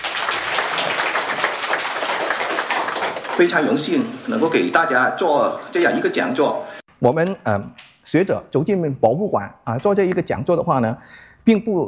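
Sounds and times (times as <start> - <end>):
crowd applauding: 0.0 - 4.2
speech: 3.4 - 11.8.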